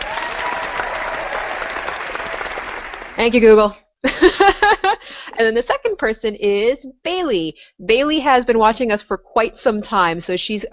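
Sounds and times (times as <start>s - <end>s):
crowd applause: 0.0s - 3.3s
speech: 3.2s - 4.8s, 5.4s - 10.7s
laughter: 4.1s - 5.3s.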